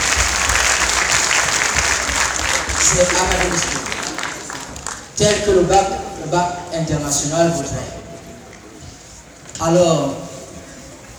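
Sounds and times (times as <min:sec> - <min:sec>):
crowd of parents applauding at an international baccalaureate school ceremony: 0:00.0 - 0:05.9
speech: 0:02.9 - 0:03.8, 0:05.2 - 0:08.0, 0:09.6 - 0:10.2.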